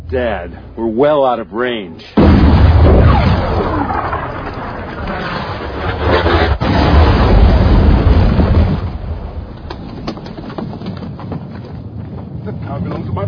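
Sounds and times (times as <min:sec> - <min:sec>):
speech: 0:00.1 - 0:03.6, 0:12.6 - 0:13.2
six-pound gun firing: 0:02.2 - 0:09.6.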